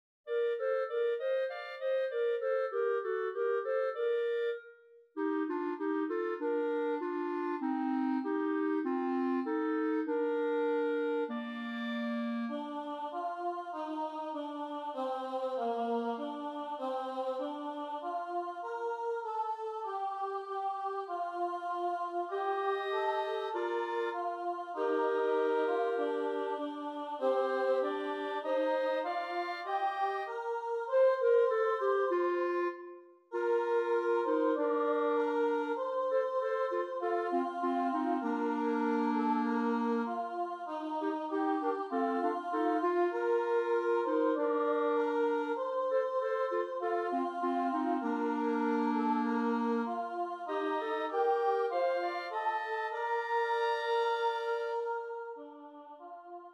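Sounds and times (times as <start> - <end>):
clarinet: 0.3 - 56.5.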